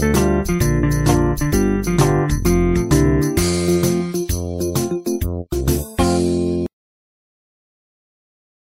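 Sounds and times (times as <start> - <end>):
solo music: 0.0 - 6.7.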